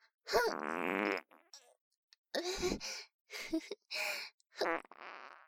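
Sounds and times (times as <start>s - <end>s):
small farts released little by little: 0.5s - 1.8s, 4.6s - 5.4s.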